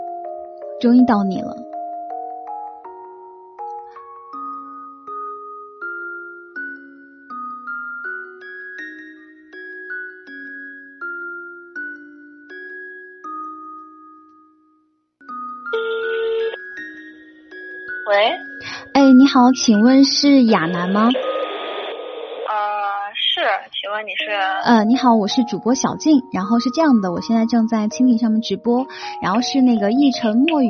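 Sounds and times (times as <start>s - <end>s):
speech: 0.8s - 1.7s, 19.3s - 21.3s, 24.0s - 30.6s
phone call ringing tone: 15.5s - 17.3s, 20.6s - 22.8s.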